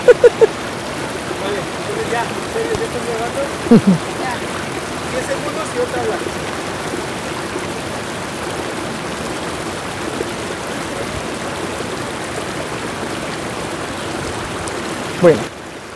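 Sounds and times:
laughter: 0.0s - 0.6s, 3.7s - 4.3s
river water flowing: 0.0s - 15.9s
speech: 2.6s - 4.1s, 5.8s - 6.5s, 15.2s - 15.5s.

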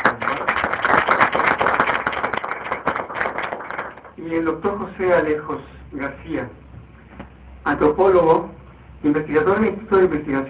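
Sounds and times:
applause: 0.0s - 4.2s
speech: 4.3s - 6.6s, 7.6s - 10.4s.

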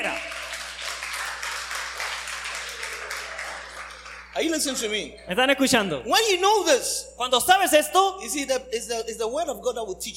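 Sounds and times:
audience clapping: 0.0s - 5.0s
speech: 4.4s - 10.1s.

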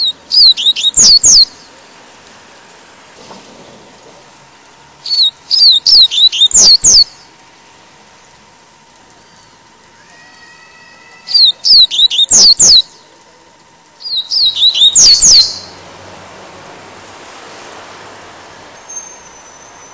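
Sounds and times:
Double-collared Seedeater song: 0.0s - 1.8s, 5.0s - 7.3s, 11.2s - 13.1s, 14.0s - 15.8s, 18.8s - 19.9s.

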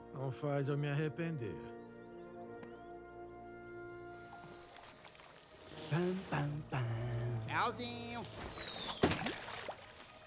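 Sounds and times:
speech: 0.2s - 1.8s, 5.9s - 9.3s
hot dog water splashing over a person: 4.2s - 6.7s, 8.0s - 10.2s.

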